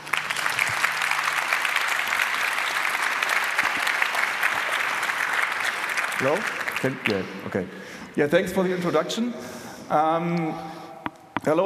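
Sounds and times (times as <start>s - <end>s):
audience applause: 0.0s - 7.6s
speech: 6.2s - 10.8s, 11.4s - 11.6s.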